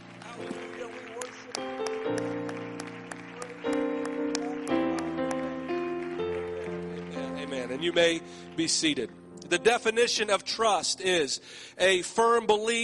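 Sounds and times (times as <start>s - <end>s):
audience hand clapping: 0.0s - 9.7s
speech: 7.8s - 12.8s.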